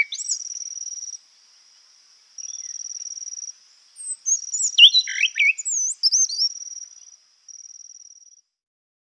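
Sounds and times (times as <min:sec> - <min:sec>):
Brown Trembler calling in Guadeloupe: 0:00.0 - 0:08.4.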